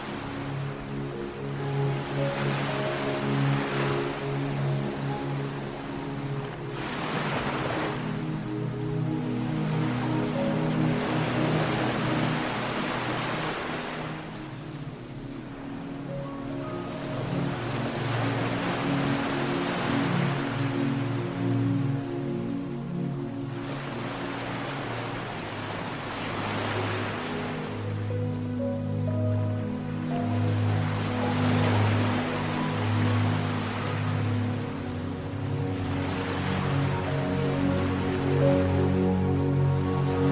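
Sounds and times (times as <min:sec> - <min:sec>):
ocean waves: 0:00.0 - 0:40.3
soft soothing music: 0:00.0 - 0:40.3.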